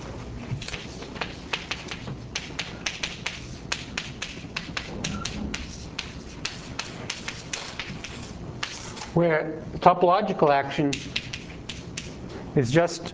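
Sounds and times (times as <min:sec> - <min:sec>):
chalk tapping on a board during a physics lecture: 0:00.6 - 0:08.8, 0:10.9 - 0:12.2
speech: 0:09.2 - 0:11.2, 0:12.6 - 0:13.1.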